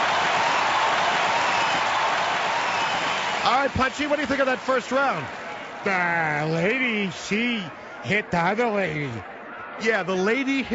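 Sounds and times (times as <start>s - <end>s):
crowd cheering and applauding: 0.0s - 7.2s
speech: 3.4s - 10.7s.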